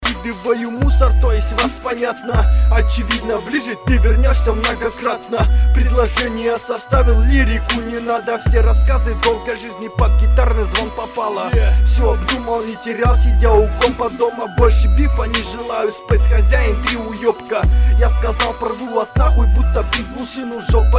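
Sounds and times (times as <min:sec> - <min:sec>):
music beat: 0:00.0 - 0:20.9.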